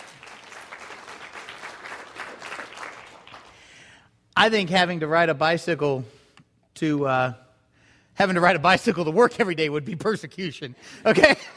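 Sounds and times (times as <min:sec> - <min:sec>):
audience applauding: 0:00.0 - 0:03.7
speech: 0:04.4 - 0:06.2, 0:06.8 - 0:07.4, 0:08.2 - 0:11.5.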